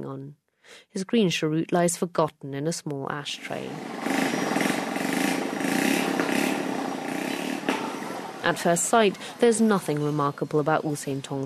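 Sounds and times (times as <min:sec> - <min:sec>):
speech: 0:00.0 - 0:04.3, 0:08.5 - 0:11.4
rusty motorbikes zooming along the main road: 0:03.4 - 0:10.4.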